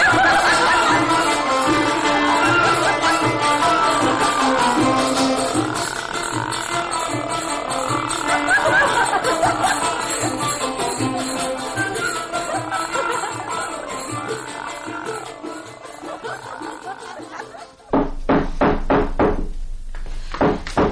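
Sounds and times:
chanted voice: 0:00.0 - 0:17.6
laughter: 0:00.0 - 0:17.9
knocking on a door in a dramatized reading: 0:17.9 - 0:20.9.

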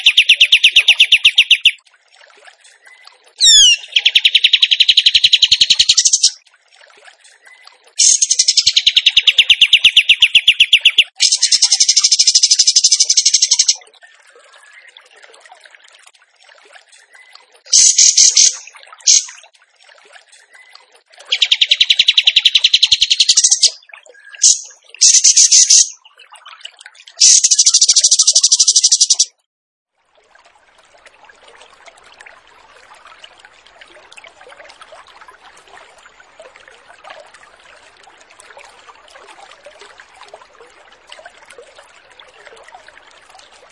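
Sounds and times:
bird song: 0:00.0 - 0:01.8, 0:03.4 - 0:06.4, 0:08.0 - 0:13.8, 0:17.7 - 0:19.4, 0:21.3 - 0:23.8, 0:24.4 - 0:26.0, 0:27.2 - 0:29.3.

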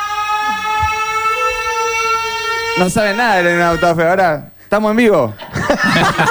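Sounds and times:
siren sound effect: 0:00.0 - 0:04.4
speech: 0:02.8 - 0:06.2
laughter: 0:05.2 - 0:06.2.

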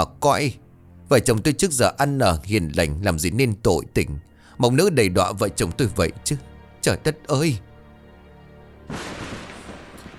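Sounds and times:
speech: 0:00.0 - 0:07.7, 0:08.9 - 0:09.3
thunderclap from a clear sky: 0:08.9 - 0:10.1.

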